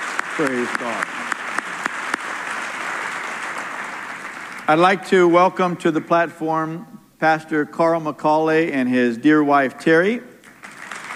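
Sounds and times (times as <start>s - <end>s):
crowd clapping: 0.0s - 5.0s, 10.4s - 11.1s
speech: 0.4s - 1.2s, 4.7s - 10.3s.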